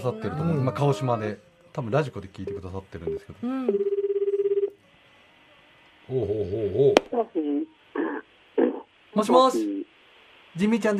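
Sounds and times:
speech: 0.0s - 3.9s, 6.1s - 8.1s, 9.2s - 9.9s, 10.6s - 10.9s
telephone ringback tone on an outgoing call: 2.5s - 4.8s.

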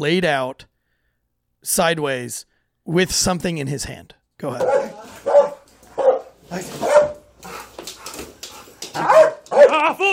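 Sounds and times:
speech: 0.0s - 0.7s, 1.6s - 4.9s, 6.5s - 6.9s
dog barking: 4.6s - 8.2s, 8.9s - 9.8s.

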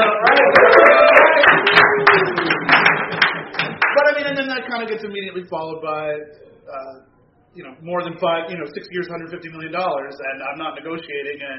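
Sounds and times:
people clapping: 0.0s - 4.7s
speech: 4.8s - 11.5s.

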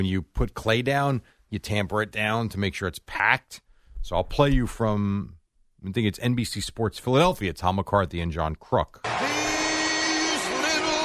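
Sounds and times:
speech: 0.0s - 9.4s
stadium crowd cheering: 9.0s - 11.0s.

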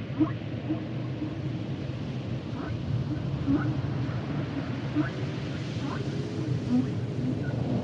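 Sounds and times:
humpback whale calls: 0.2s - 1.4s, 2.6s - 7.8s.

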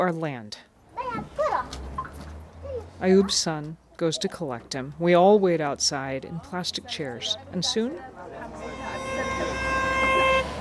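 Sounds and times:
speech: 0.0s - 1.5s, 3.0s - 8.6s
car horn honking in celebration: 8.5s - 10.5s.

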